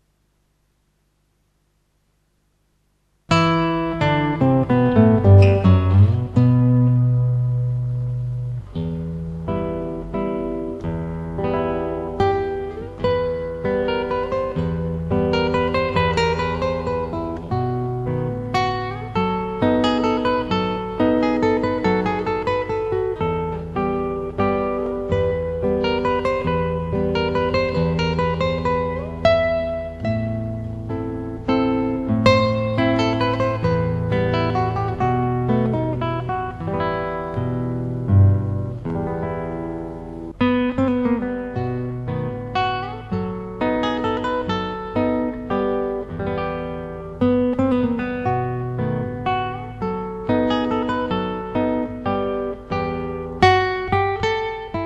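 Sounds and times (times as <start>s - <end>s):
guitar: 0.0s - 54.8s.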